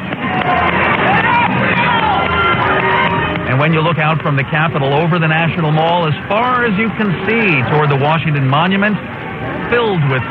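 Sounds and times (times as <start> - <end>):
people shouting: 0.0 - 8.2
large outdoor crowd applauding and cheering: 0.0 - 10.2
speech: 3.6 - 10.2.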